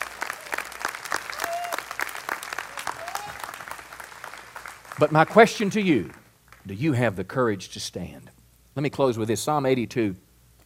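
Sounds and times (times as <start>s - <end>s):
steady applause from a crowd: 0.0s - 6.6s
faint whoops and voices: 1.3s - 2.0s, 2.7s - 3.6s
speech: 5.0s - 10.2s.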